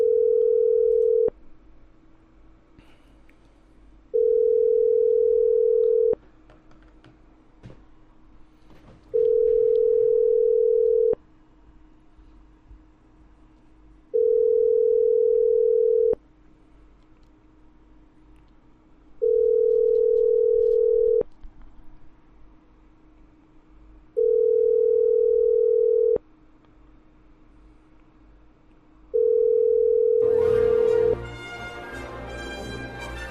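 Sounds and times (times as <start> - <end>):
telephone ringback tone while a number is dialed: 0.0 - 1.3, 4.2 - 6.2, 9.2 - 11.2, 14.2 - 16.2, 19.2 - 21.2, 24.2 - 26.2, 29.2 - 31.2.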